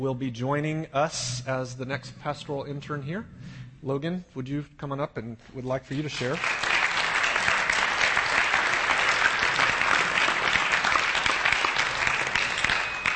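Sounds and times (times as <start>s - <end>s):
speech: 0.0s - 6.7s
audience applause: 6.3s - 13.1s.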